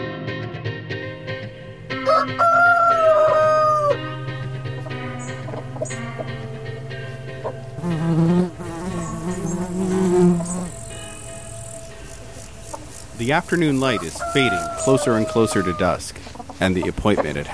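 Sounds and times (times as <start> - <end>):
rooster crowing: 2.0 - 4.1, 13.6 - 16.0
faint clucks of farmyard activity: 2.0 - 6.7, 8.8 - 17.5
insects buzzing: 2.7 - 17.5
speech: 13.3 - 17.5.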